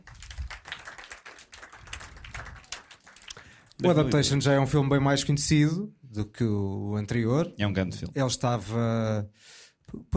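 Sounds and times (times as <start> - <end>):
round of applause: 0.0 - 4.3
speech: 3.8 - 10.1.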